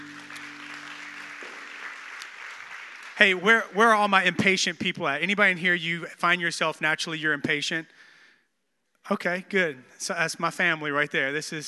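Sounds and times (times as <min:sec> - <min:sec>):
audience clapping: 0:00.0 - 0:04.3
speech: 0:03.2 - 0:08.1, 0:09.0 - 0:11.6.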